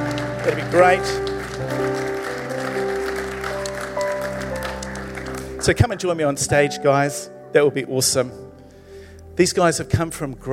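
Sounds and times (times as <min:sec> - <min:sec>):
audience applause: 0:00.0 - 0:05.8
sustained musical tones: 0:00.0 - 0:07.5
speech: 0:00.5 - 0:02.1, 0:05.6 - 0:08.5, 0:09.4 - 0:10.5.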